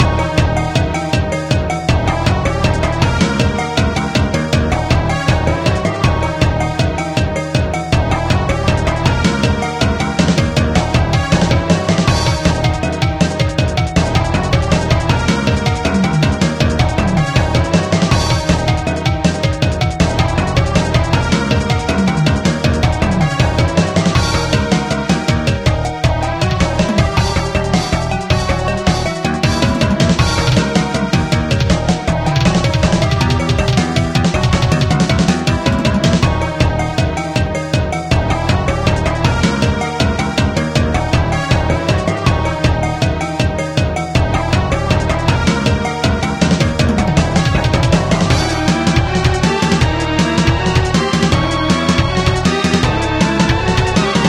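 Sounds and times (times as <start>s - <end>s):
boss slime music loop: 0.0s - 54.2s.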